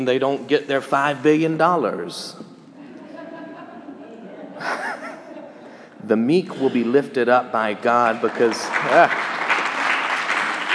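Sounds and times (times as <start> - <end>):
speech: 0.0 - 2.5, 6.0 - 9.3
laughter: 2.8 - 5.9
audience applauding: 7.8 - 10.7.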